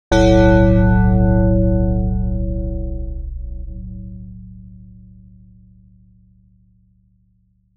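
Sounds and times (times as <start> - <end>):
bell: 0.1 - 2.8.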